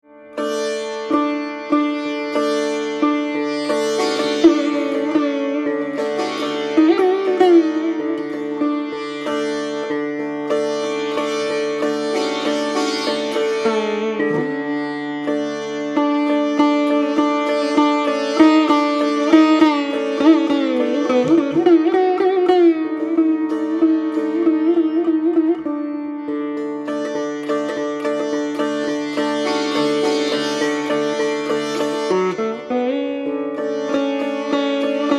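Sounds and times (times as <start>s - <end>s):
sitar: 0.0s - 35.1s.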